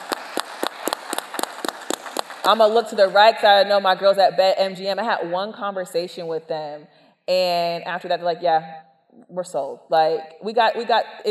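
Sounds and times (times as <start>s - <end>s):
audience applause for sponsors: 0.0s - 2.6s
speech: 2.4s - 11.2s.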